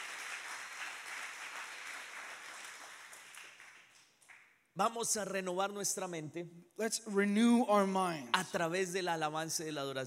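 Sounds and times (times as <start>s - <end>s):
congregation applauding in a church worship service: 0.0s - 4.6s
speech: 4.8s - 10.0s.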